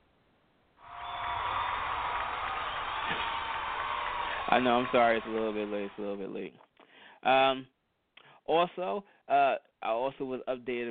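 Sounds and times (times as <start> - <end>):
applause sound effect: 0.8 - 6.4
speech: 4.5 - 7.8, 8.5 - 10.8.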